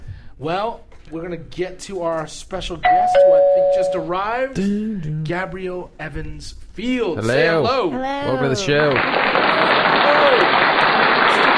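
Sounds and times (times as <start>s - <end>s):
speech: 0.4s - 9.5s
audience applause as a guest arrives on a show: 8.7s - 11.5s.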